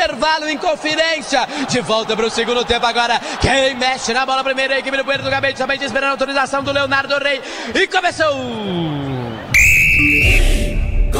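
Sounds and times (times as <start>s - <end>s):
commentator speaking: 0.0s - 9.3s
crowd noise: 0.0s - 11.1s
speech: 0.1s - 9.2s
referee's whistle at the start of the second half of a football match: 8.3s - 11.1s.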